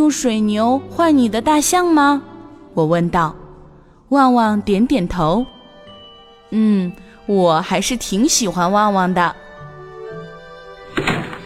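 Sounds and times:
speech: 0:00.0 - 0:03.4, 0:04.1 - 0:05.6, 0:06.5 - 0:09.4
door opening: 0:10.9 - 0:11.4.

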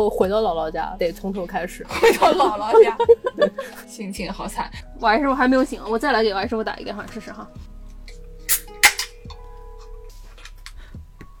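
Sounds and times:
speech: 0:00.0 - 0:07.7
laughter: 0:01.9 - 0:03.7
beer can cracked open: 0:08.5 - 0:09.1.

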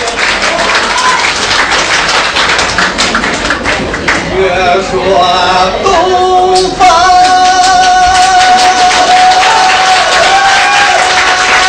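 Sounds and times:
audience applause: 0:00.0 - 0:04.3, 0:07.4 - 0:11.6
speech: 0:04.7 - 0:07.0.

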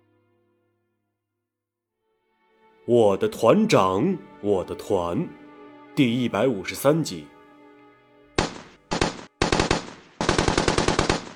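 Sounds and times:
speech: 0:02.9 - 0:05.4, 0:06.0 - 0:07.3
machine gun fire across a trench battlefield: 0:08.4 - 0:11.3.

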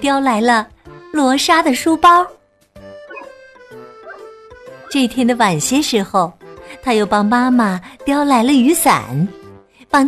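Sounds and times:
speech: 0:00.0 - 0:02.4, 0:04.9 - 0:10.0
small dog yapping: 0:03.1 - 0:03.4, 0:04.0 - 0:05.0.

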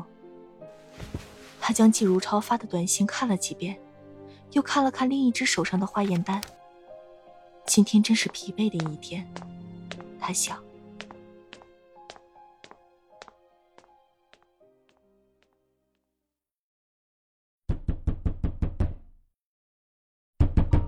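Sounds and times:
speech: 0:01.6 - 0:03.8, 0:04.5 - 0:06.6, 0:07.7 - 0:09.5, 0:10.2 - 0:10.7
soft rhythmic tapping: 0:07.7 - 0:15.6
loud rapid pounding on a door: 0:17.7 - 0:19.1.

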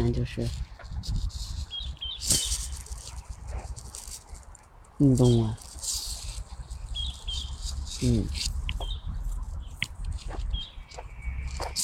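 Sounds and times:
rustle: 0:00.0 - 0:11.8
steady rumbling noise: 0:00.0 - 0:11.8
speech: 0:00.1 - 0:01.3, 0:05.0 - 0:05.6, 0:08.0 - 0:08.5
birds singing in the trees: 0:01.5 - 0:03.1, 0:06.2 - 0:11.8.

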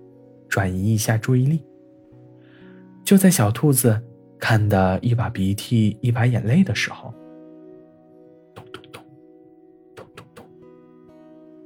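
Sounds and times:
speech: 0:00.5 - 0:01.7, 0:03.1 - 0:07.2
urgent knocking on a door: 0:08.6 - 0:09.2, 0:10.0 - 0:10.5.

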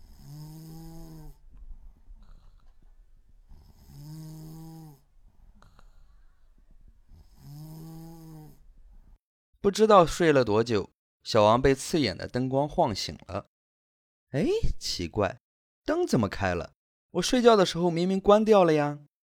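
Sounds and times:
snoring: 0:00.0 - 0:01.4, 0:03.5 - 0:06.3, 0:07.1 - 0:08.6
speech: 0:09.6 - 0:13.5, 0:14.3 - 0:19.1.

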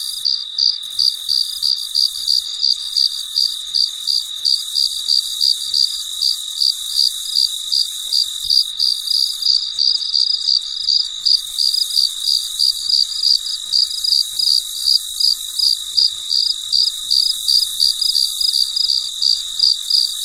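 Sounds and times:
constant shrill background trill: 0:00.0 - 0:20.2
cricket chirps: 0:00.0 - 0:20.2.

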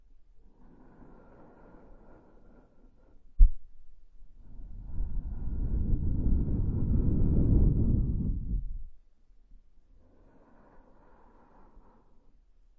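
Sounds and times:
wind blowing past the ear in gusts: 0:04.4 - 0:09.0.

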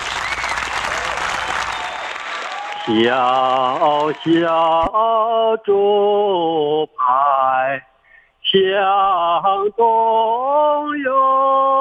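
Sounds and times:
audience applause: 0:00.0 - 0:04.8
speech: 0:02.9 - 0:07.9, 0:08.5 - 0:11.7.

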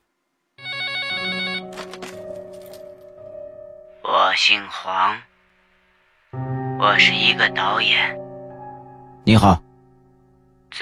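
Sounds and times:
telephone ringing: 0:00.6 - 0:02.4
speech: 0:04.4 - 0:05.3, 0:06.8 - 0:08.2, 0:09.3 - 0:09.6.

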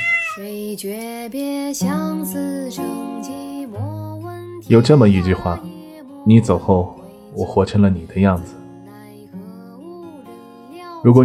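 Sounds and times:
cat meowing: 0:00.0 - 0:00.6, 0:04.7 - 0:05.7
speech: 0:00.4 - 0:08.6, 0:11.0 - 0:11.2.

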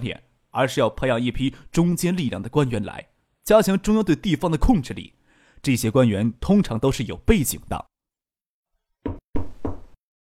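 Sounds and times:
speech: 0:00.0 - 0:07.9
knocking on a door: 0:09.0 - 0:10.0.

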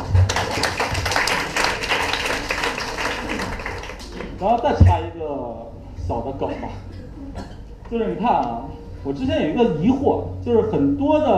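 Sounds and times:
audience applause: 0:00.0 - 0:04.4
speech: 0:04.4 - 0:11.3.

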